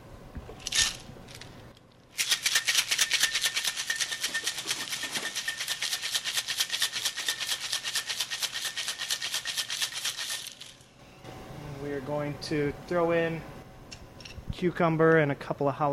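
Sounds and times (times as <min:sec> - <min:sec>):
cocktail shaker full of ice shaken hard: 0:02.1 - 0:10.8
speech: 0:12.2 - 0:13.6, 0:14.6 - 0:15.9.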